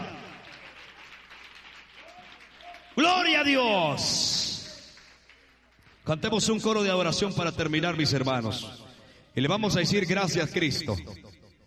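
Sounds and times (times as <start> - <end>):
church congregation clapping during an evening service: 0.0 - 7.9
speech: 3.0 - 4.4, 6.1 - 11.3.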